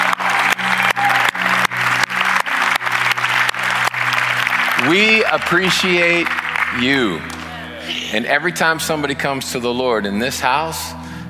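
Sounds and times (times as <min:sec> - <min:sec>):
audience applause for volunteers: 0:00.0 - 0:08.1
speech: 0:04.9 - 0:11.0.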